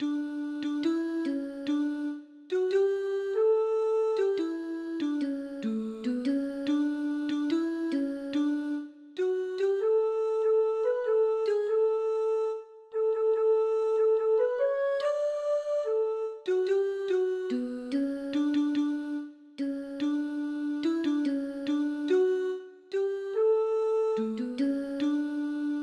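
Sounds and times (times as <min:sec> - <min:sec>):
folk tune: 0:00.0 - 0:25.8.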